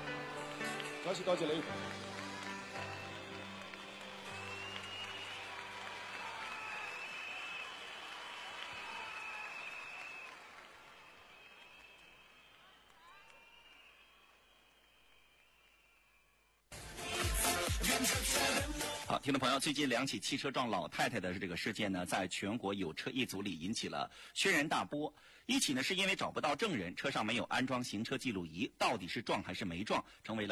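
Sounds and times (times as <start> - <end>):
music: 0.0 - 6.8, 16.7 - 19.8
audience applause: 0.0 - 15.5
speech: 1.0 - 2.1, 19.3 - 30.5.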